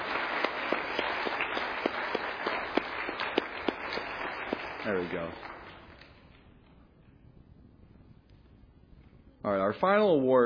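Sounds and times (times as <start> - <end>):
crowd applause: 0.0 - 6.0
speech: 4.9 - 5.5, 9.4 - 10.4.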